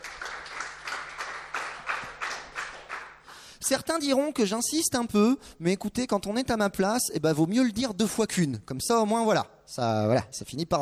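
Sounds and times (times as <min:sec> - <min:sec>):
audience applause: 0:00.0 - 0:03.2
speech: 0:03.6 - 0:10.8.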